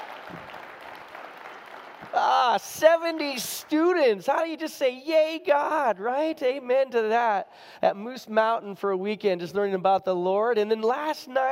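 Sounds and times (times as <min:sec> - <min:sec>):
church congregation applause for the youth pastor: 0:00.0 - 0:04.9
speech: 0:02.2 - 0:11.5.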